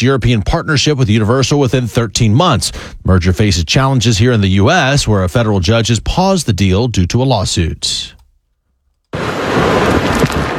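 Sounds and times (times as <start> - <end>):
speech: 0.0 - 8.2
Tropical Storm Bertha rain at landfall east of New Orleans: 9.2 - 10.5
Tropical Storm Bertha wind at landfall east of New Orleans: 9.2 - 10.5.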